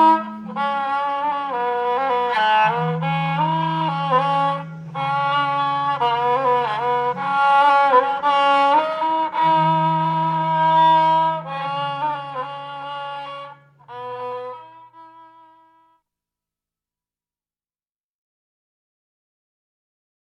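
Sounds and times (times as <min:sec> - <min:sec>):
rebab playing: 0:00.0 - 0:15.4.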